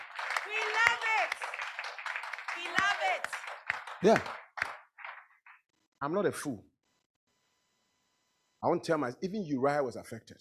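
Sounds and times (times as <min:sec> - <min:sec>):
voices calling and cheering: 0:00.0 - 0:01.6, 0:02.5 - 0:03.4
audience clapping: 0:00.0 - 0:05.7
speech: 0:00.5 - 0:01.5, 0:02.6 - 0:04.4, 0:06.0 - 0:06.7, 0:08.6 - 0:10.3.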